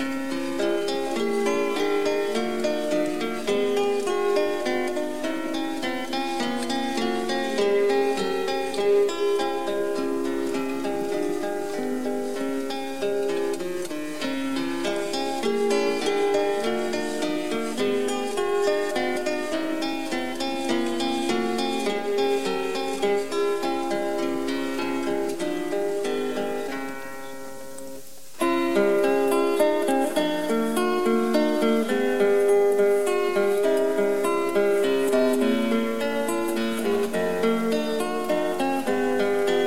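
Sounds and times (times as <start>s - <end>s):
andante music: 0.0s - 39.6s.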